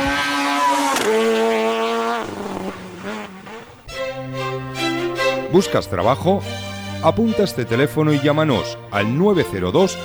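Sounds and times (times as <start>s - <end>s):
rally car engine revving at the Rally Santander-Cantabria: 0.0s - 6.1s
speech: 5.5s - 10.0s.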